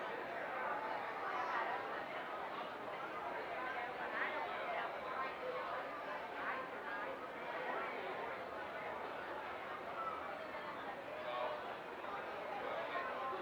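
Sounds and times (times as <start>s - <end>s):
people chattering: 0.2s - 13.3s.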